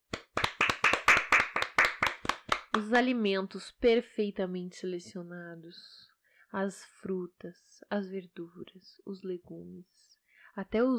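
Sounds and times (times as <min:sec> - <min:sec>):
hand clapping: 0:00.0 - 0:03.0
speech: 0:02.8 - 0:10.9.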